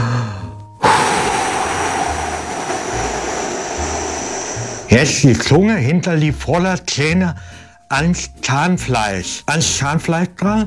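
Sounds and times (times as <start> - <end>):
forceful exhale during a breathing exercise: 0.8 - 5.1
speech: 4.9 - 10.6.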